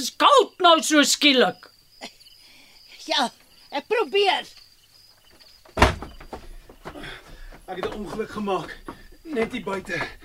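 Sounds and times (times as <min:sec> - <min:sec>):
speech: 0:00.0 - 0:02.2, 0:03.1 - 0:04.6, 0:07.7 - 0:10.2
door being pushed shut: 0:05.7 - 0:06.5.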